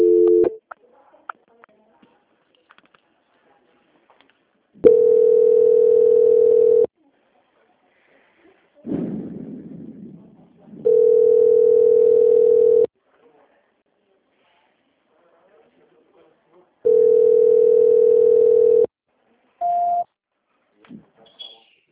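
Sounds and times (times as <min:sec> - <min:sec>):
telephone line tones during call transfer to an audit department: 0:00.0 - 0:00.6, 0:04.8 - 0:06.9, 0:10.9 - 0:12.9, 0:16.9 - 0:18.9.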